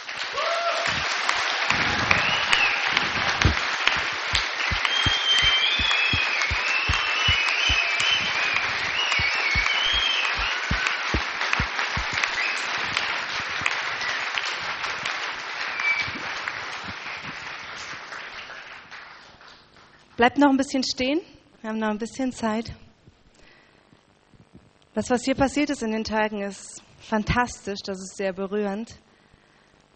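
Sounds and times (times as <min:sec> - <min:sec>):
people cheering: 0:00.0 - 0:17.5
audience applause: 0:00.0 - 0:19.6
speech: 0:20.2 - 0:22.8, 0:25.0 - 0:29.0.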